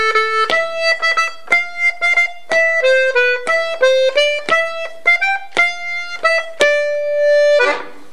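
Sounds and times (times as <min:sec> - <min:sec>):
flutes playing second voice: 0:00.0 - 0:08.1.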